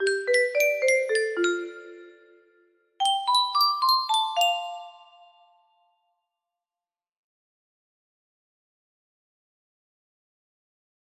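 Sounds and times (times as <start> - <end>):
music box melody: 0.0 - 2.4, 3.0 - 5.6.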